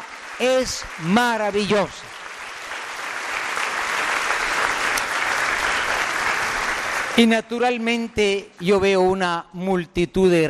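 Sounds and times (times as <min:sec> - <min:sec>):
audience applauding: 0:00.0 - 0:07.8
speech: 0:00.4 - 0:02.1, 0:07.2 - 0:10.4.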